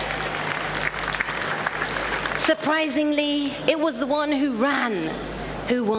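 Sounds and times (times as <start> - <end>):
audience clapping: 0.0 - 3.2
speech: 2.4 - 5.9.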